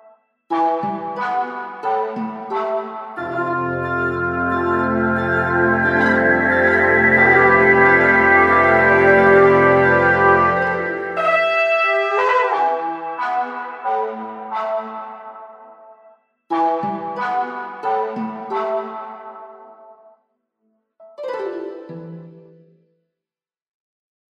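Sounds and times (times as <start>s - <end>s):
horn: 0.6s - 15.9s, 16.5s - 19.5s.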